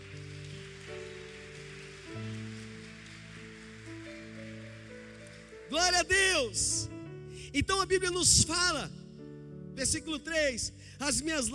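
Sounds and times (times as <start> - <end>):
audience applauding: 0.0 - 6.7
speech: 5.7 - 6.9, 7.5 - 9.0, 9.8 - 11.5.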